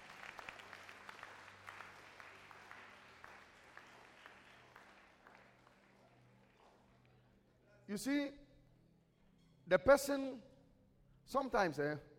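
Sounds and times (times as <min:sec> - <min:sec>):
audience clapping: 0:00.0 - 0:07.3
speech: 0:07.9 - 0:08.4, 0:09.7 - 0:10.5, 0:11.3 - 0:12.1.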